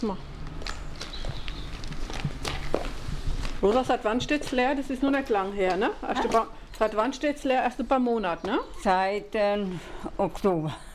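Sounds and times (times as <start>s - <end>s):
speech: 0.0s - 0.3s, 3.6s - 10.9s
footsteps of people walking into a vacant building: 0.5s - 6.9s.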